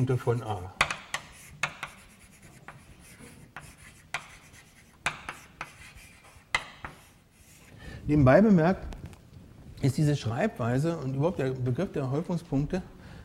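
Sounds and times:
speech: 0:00.0 - 0:00.8, 0:08.1 - 0:08.9, 0:09.8 - 0:13.0
handwriting of a mathematical definition: 0:00.2 - 0:07.7.

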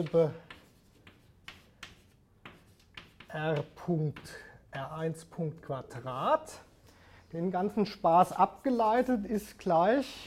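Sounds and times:
speech: 0:00.0 - 0:00.4, 0:03.3 - 0:06.7, 0:07.3 - 0:10.2
hiss: 0:00.0 - 0:10.2
someone writing down an equation: 0:00.4 - 0:03.7.

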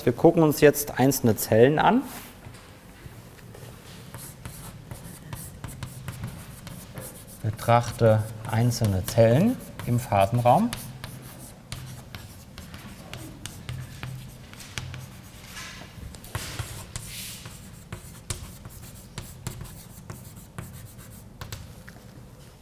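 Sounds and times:
speech: 0:00.0 - 0:02.3, 0:07.7 - 0:10.9
writing a vector on a board during a lecture: 0:04.1 - 0:21.7.

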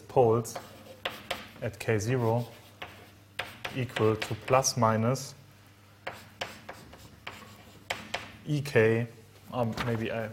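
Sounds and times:
speech: 0:00.2 - 0:00.7, 0:01.6 - 0:02.6, 0:03.7 - 0:05.4, 0:08.5 - 0:10.3
writing scratches on a board during a mathematics lecture: 0:00.4 - 0:04.7, 0:06.0 - 0:08.4.

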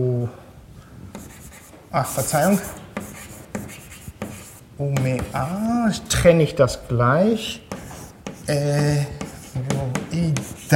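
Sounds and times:
writing a Basque example sentence on a board: 0:01.1 - 0:05.6, 0:07.6 - 0:10.7
speech: 0:01.9 - 0:02.8, 0:04.8 - 0:07.8, 0:08.5 - 0:10.7.

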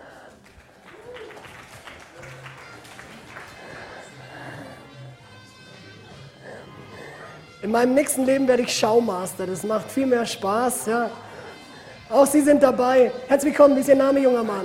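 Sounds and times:
audience applause: 0:00.0 - 0:04.8
voices and cheers: 0:00.9 - 0:02.8
speech: 0:07.6 - 0:11.2, 0:12.1 - 0:14.6.

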